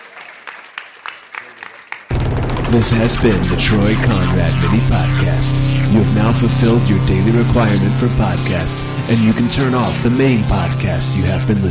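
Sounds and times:
audience applause: 0.0 - 2.7
speech: 2.7 - 11.6.

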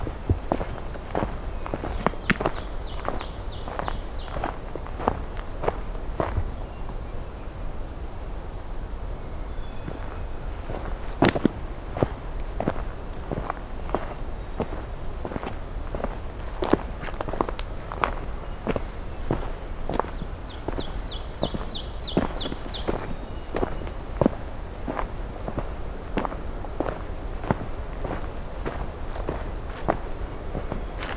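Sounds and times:
footsteps crunching on a morning hike: 0.0 - 7.0, 9.8 - 31.1
high rapid birdsong trills: 0.0 - 7.6, 9.2 - 12.1, 13.3 - 25.0
low constant rumble: 0.0 - 31.1.

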